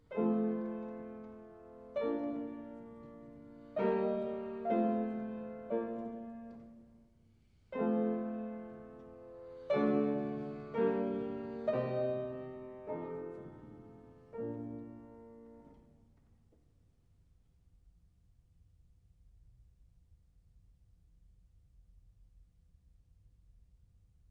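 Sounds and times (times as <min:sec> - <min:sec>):
solo fortepiano bagatelles: 0:00.0 - 0:07.0, 0:07.7 - 0:15.9.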